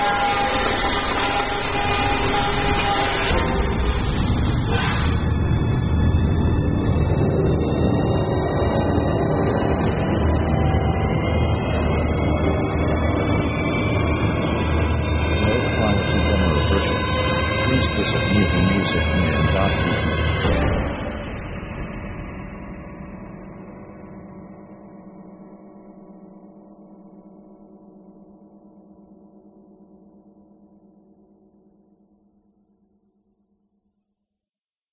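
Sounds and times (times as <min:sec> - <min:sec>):
creepy horror orchestra music: 0:00.0 - 0:26.9.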